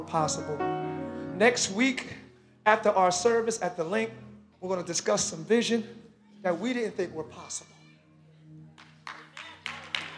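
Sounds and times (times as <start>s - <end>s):
speech: 0.0s - 7.7s
person clapping hands: 8.8s - 10.1s.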